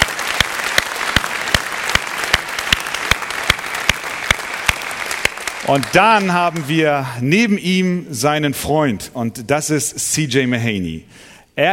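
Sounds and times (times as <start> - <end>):
applause: 0.0 - 7.1
speech: 5.6 - 11.7.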